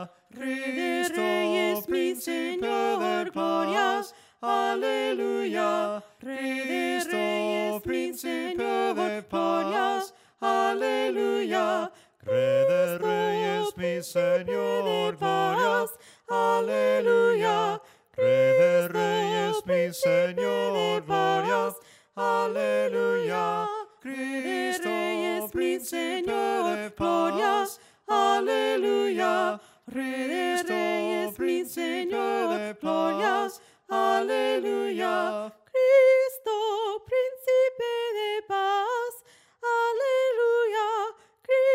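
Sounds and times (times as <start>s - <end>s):
soprano singing: 0.4s - 41.7s.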